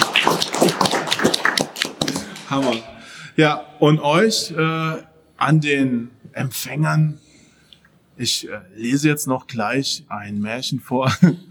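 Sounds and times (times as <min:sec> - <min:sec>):
audience applause: 0:00.0 - 0:03.0
speech: 0:02.5 - 0:07.2, 0:08.2 - 0:11.5.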